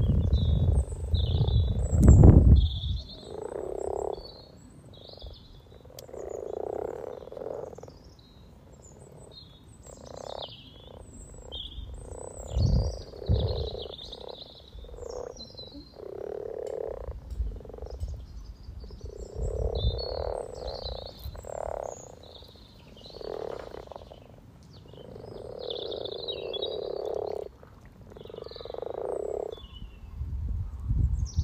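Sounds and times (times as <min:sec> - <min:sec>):
frogs croaking together in purring bursts: 0:00.0 - 0:29.8
birdsong: 0:00.0 - 0:31.4.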